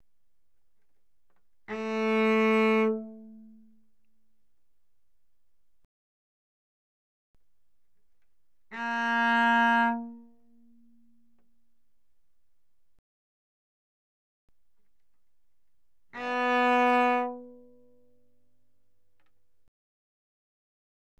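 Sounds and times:
cello arco notes on the D string: 1.3 - 3.9, 8.6 - 11.4, 16.1 - 18.1.

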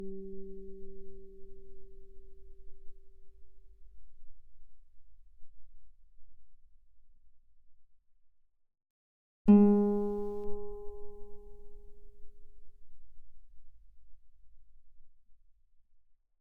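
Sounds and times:
guitar notes mezzo forte on the D string: 9.5 - 11.8.

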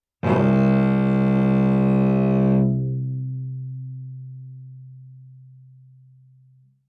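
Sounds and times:
cello bowed fortissimo on the C string: 0.2 - 3.5.

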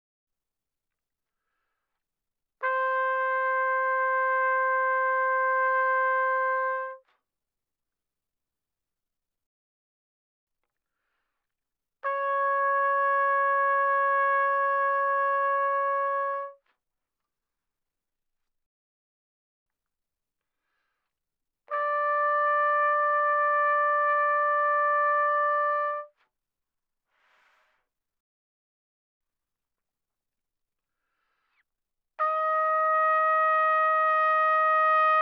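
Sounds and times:
trumpet soft notes without vibrato: 2.6 - 7.0, 12.0 - 16.6, 21.7 - 26.2, 32.2 - 35.1.

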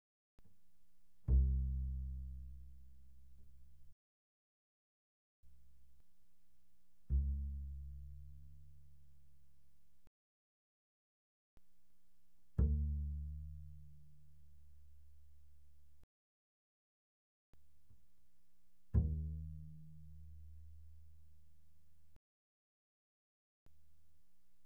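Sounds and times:
double bass pizzicato mezzo forte on the A string: 1.2 - 3.9, 6.9 - 9.4, 12.4 - 16.0, 18.8 - 21.4.

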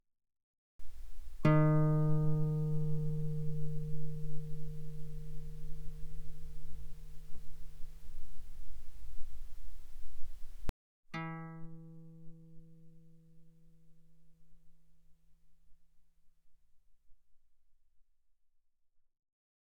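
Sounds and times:
guitar notes played mezzo forte on the A string: 0.8 - 12.4.

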